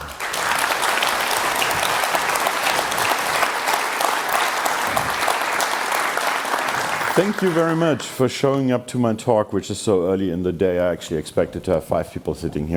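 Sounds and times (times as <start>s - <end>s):
audience applause: 0.0s - 8.5s
speech: 7.2s - 12.7s.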